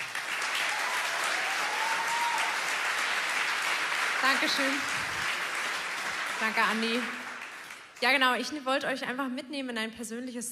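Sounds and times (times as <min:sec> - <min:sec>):
audience applause: 0:00.0 - 0:08.0
speech: 0:04.2 - 0:05.1, 0:06.4 - 0:07.2, 0:08.0 - 0:10.5.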